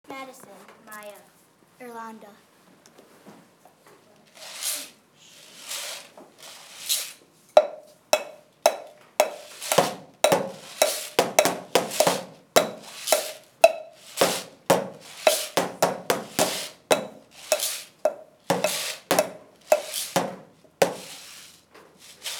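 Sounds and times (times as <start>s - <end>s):
found instruments playing: 7.6s - 21.2s.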